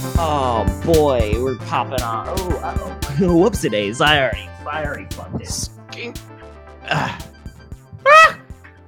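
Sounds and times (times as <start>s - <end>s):
speech: 0.2s - 6.3s, 6.9s - 7.3s
person sneezing: 8.0s - 8.4s.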